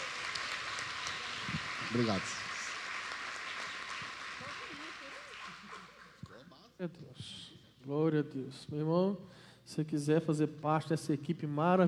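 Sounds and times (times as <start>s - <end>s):
audience applause: 0.0s - 6.3s
speech: 1.9s - 2.4s, 6.8s - 11.8s.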